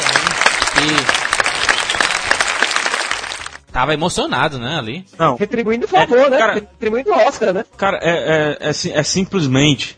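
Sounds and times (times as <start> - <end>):
applause: 0.0 - 3.7
speech: 0.8 - 1.2, 3.8 - 9.9.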